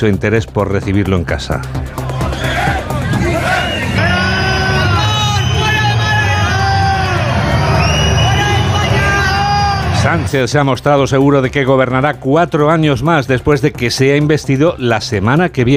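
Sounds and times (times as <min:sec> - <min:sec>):
speech: 0:00.0 - 0:02.0, 0:10.0 - 0:15.7
protesters booing in Málaga: 0:01.9 - 0:10.3.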